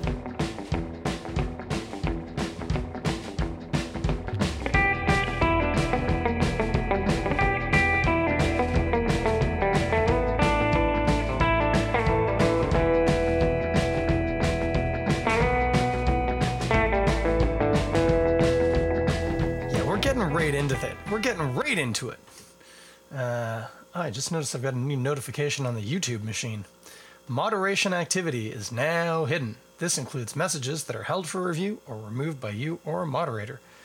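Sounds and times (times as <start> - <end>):
upbeat instrumental podcast theme song: 0.0 - 21.7
steady driving drum beat: 0.0 - 21.9
speech: 21.3 - 22.2, 23.2 - 33.7.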